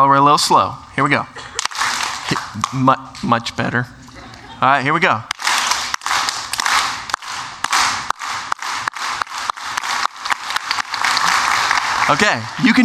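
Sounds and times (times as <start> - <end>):
speech: 0.0 - 1.5, 2.6 - 4.0, 4.6 - 5.3, 12.1 - 12.8
laughter: 0.9 - 6.1, 10.7 - 12.8
audience clapping hands together: 1.6 - 3.4, 5.3 - 12.8.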